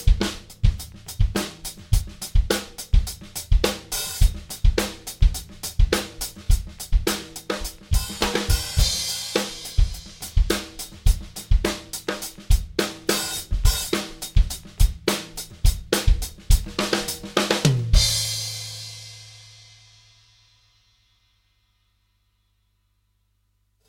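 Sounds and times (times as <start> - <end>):
funk music at 105 BPM: 0.0 - 18.5.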